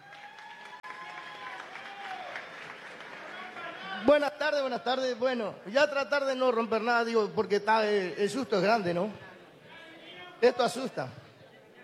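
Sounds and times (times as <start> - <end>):
audience applause: 0.0 - 4.3
speech: 4.0 - 9.3, 10.4 - 11.2.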